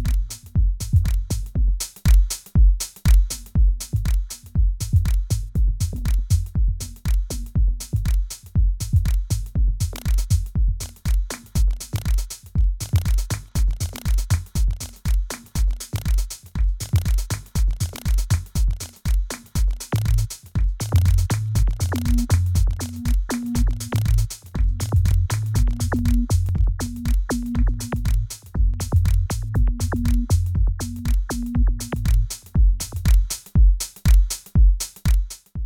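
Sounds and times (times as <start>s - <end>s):
live drum loop: 0.0s - 35.6s.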